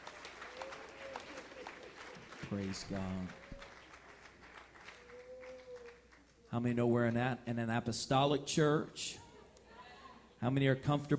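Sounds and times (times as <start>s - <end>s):
audience clapping hands: 0.0s - 6.5s
speech: 2.5s - 3.4s, 6.5s - 9.2s, 10.4s - 11.1s.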